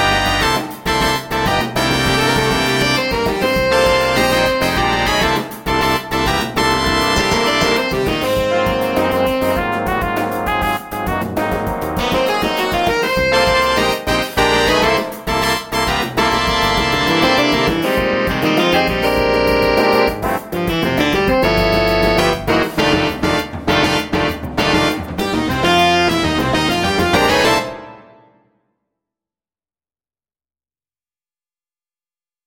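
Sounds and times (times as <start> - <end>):
auxiliary percussion playalong in funk and jazz style: 0.4 - 27.7.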